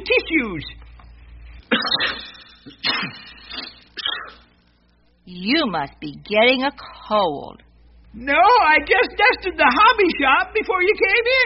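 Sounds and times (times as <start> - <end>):
speech: 0.0 - 0.8, 5.3 - 11.4
person sneezing into a tissue: 1.7 - 4.3.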